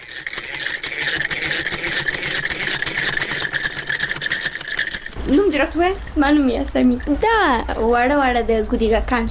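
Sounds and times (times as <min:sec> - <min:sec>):
sewing machine running at a tailoring course in Kabul: 0:00.0 - 0:06.1
speech: 0:05.3 - 0:09.2.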